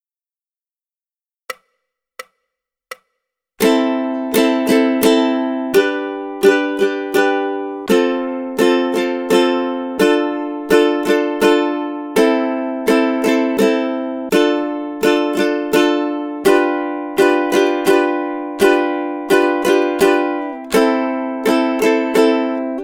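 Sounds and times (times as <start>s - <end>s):
ukulele rhythm study: 1.5s - 22.8s.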